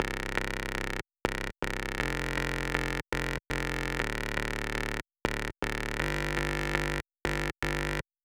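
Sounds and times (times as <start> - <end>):
bass: 0.0 - 8.1.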